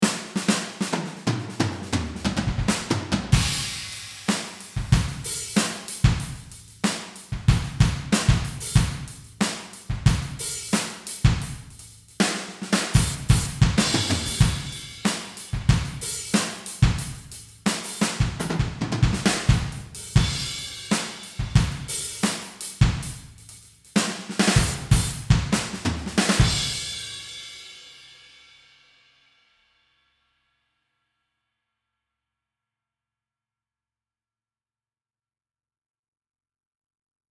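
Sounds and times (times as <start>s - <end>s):
drums: 0.0s - 29.3s.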